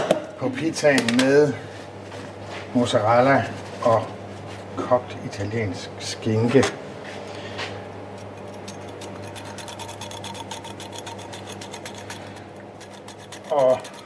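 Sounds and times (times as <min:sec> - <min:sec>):
speech: 0:00.4 - 0:01.7, 0:02.8 - 0:04.2, 0:04.8 - 0:06.8
black truffle being shaved onto a pizza: 0:08.1 - 0:14.0.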